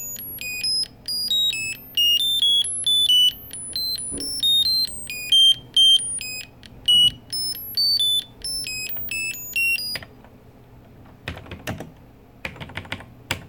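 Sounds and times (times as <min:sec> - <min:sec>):
TRS-80 computer random beeps: 0:00.0 - 0:10.0.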